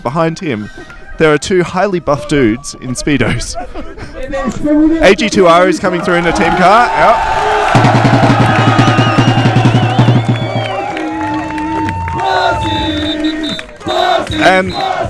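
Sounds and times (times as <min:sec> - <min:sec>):
speech: 0:00.0 - 0:08.5, 0:14.4 - 0:15.0
laughter: 0:03.2 - 0:04.9
roadside crowd cheering and shouting: 0:05.6 - 0:15.0
rhythmic drumming or clapping: 0:06.2 - 0:15.0
high whistling cries: 0:08.5 - 0:15.0.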